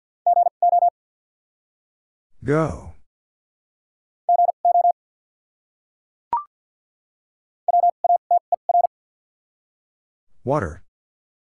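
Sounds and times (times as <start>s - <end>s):
rapid Morse code beeping at 50 wpm: 0.3s - 0.9s, 4.3s - 5.0s, 7.7s - 8.9s
speech: 2.4s - 2.9s, 10.4s - 10.8s.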